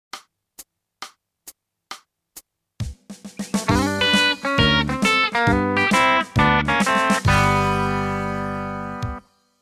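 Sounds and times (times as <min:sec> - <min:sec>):
country music: 0:03.4 - 0:09.2.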